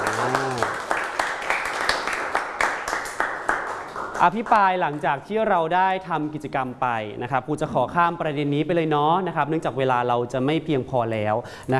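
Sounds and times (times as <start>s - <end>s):
classroom applause: 0.0s - 5.1s
speech: 4.2s - 11.7s.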